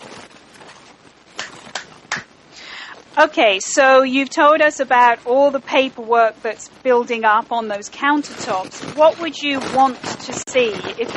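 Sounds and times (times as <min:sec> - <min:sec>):
hand clap: 0:01.4 - 0:02.3
speech: 0:03.2 - 0:11.1.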